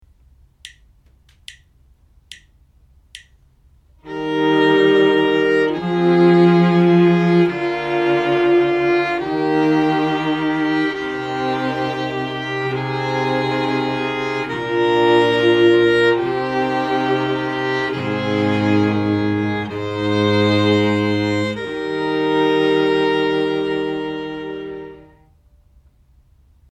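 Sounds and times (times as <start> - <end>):
string quartet playing: 4.0 - 25.3.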